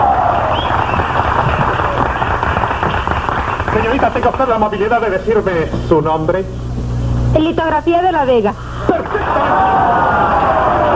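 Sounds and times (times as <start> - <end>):
audience applause: 0.0 - 4.9, 8.9 - 10.9
speech: 4.0 - 6.7, 7.3 - 10.8.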